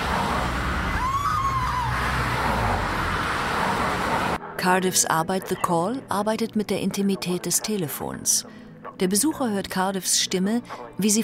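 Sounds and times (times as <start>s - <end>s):
city street traffic: 0.0s - 4.4s
speech: 4.6s - 11.2s.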